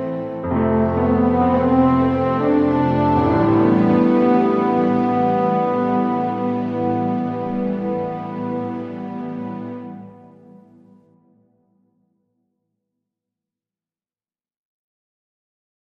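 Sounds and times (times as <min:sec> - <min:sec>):
lullaby music: 0:00.0 - 0:10.9.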